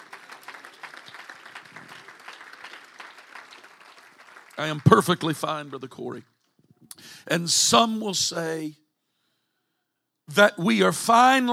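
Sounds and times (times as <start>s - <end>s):
audience hand clap of praise: 0.0s - 6.2s
speech: 4.6s - 6.3s, 7.2s - 8.8s, 10.4s - 11.5s.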